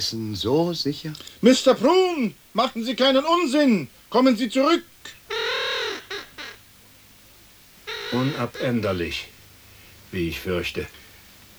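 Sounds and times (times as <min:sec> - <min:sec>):
speech: 0:00.0 - 0:05.2, 0:08.1 - 0:09.4, 0:10.1 - 0:11.0
crows cawing: 0:03.9 - 0:10.1.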